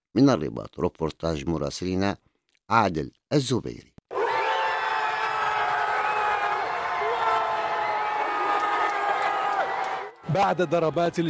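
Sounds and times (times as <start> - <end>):
speech: 0.2 - 4.0, 10.3 - 11.2
football fans cheering and celebrating: 4.1 - 11.2.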